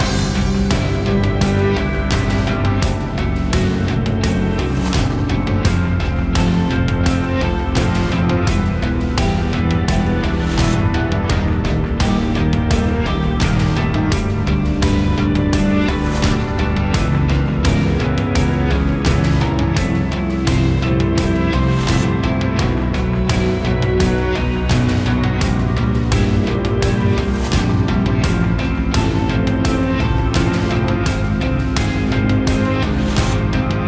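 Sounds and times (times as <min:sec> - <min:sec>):
background music for Kowloon street: 0:00.0 - 0:33.8.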